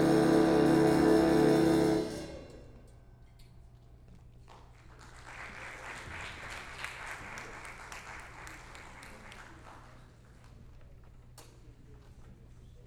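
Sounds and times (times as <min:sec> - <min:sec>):
jazz band playing: 0:00.0 - 0:02.4.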